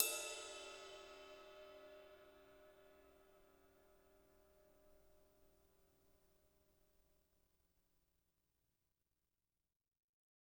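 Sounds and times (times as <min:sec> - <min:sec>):
ride cymbals: 0:00.0 - 0:02.2.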